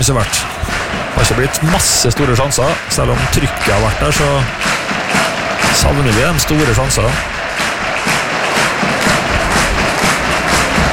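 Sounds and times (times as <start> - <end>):
speech: 0.0 - 0.6, 1.2 - 5.0, 5.7 - 7.4
large stadium crowd cheering: 0.0 - 10.9.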